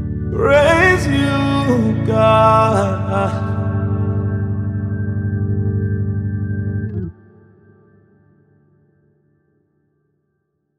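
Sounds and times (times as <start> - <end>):
acoustic music: 0.0 - 7.4.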